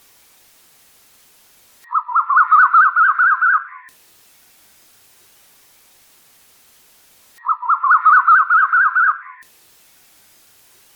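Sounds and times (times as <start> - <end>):
bird chattering song: 1.9 - 3.9, 7.4 - 9.4.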